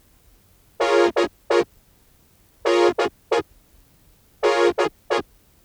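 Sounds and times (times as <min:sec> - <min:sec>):
Reface CS synthesizer chords: 0:00.8 - 0:01.7, 0:02.7 - 0:03.1, 0:04.5 - 0:05.2.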